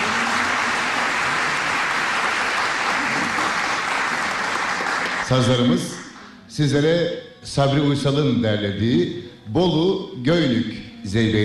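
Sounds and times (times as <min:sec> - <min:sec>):
audience applause for Turkish folk music saz performers: 0:00.0 - 0:06.3
speech: 0:05.3 - 0:11.4.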